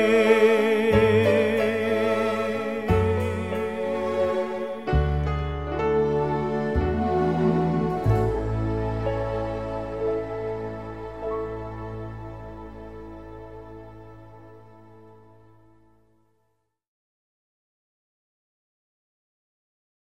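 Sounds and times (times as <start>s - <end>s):
man singing: 0.0s - 4.9s
orchestra playing: 0.0s - 15.3s.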